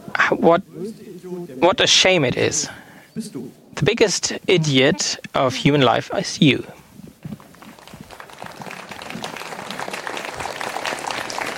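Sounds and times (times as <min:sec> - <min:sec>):
speech: 0:00.3 - 0:06.8
audience applause: 0:07.4 - 0:11.5.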